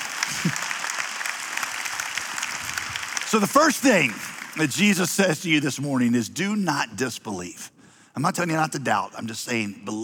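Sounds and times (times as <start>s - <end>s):
audience clapping: 0.0s - 5.4s
speech: 0.4s - 0.7s, 3.3s - 10.0s.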